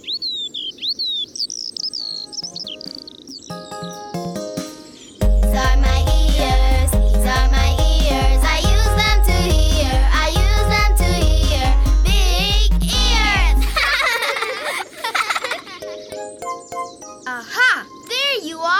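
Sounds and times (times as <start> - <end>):
birds chirping: 0.0 - 18.7
loud music: 4.2 - 13.8
laughter: 13.6 - 15.8.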